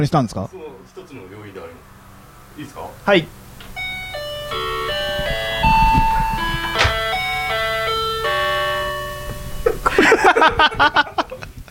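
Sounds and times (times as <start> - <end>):
speech: 0.0 - 1.2, 2.6 - 3.4, 10.2 - 11.1
electronic entrance chime playing convenience-store jingle: 3.7 - 9.8
bursts of laughter: 9.6 - 11.6.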